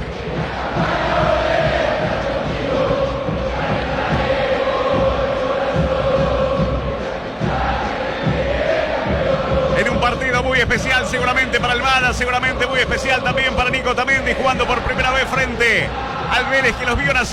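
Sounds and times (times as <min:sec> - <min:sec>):
football fans chanting and shouting at a stadium: 0:00.0 - 0:17.3
speech: 0:11.1 - 0:17.3.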